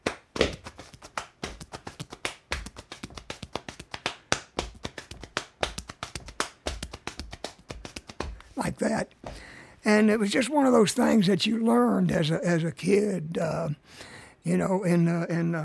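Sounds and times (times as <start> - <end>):
hands slapping leg and chest: 0.0 - 9.5
speech: 8.6 - 15.6.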